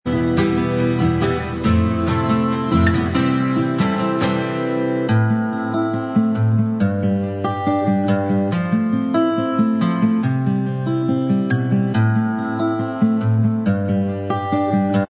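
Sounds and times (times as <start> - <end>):
acoustic instrumental backing track: 0.0 - 15.0.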